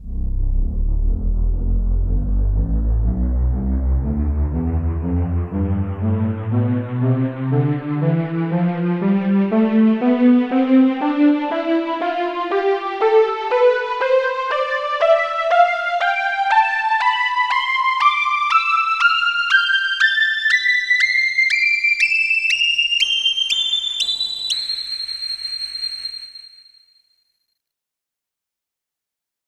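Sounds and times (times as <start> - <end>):
polyphonic synthesizer: 0.0 - 25.0.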